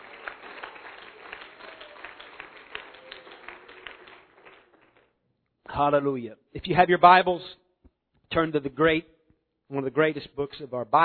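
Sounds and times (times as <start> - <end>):
audience clapping hands: 0.0 - 5.2
speech: 5.8 - 7.6, 8.4 - 9.1, 9.7 - 11.0.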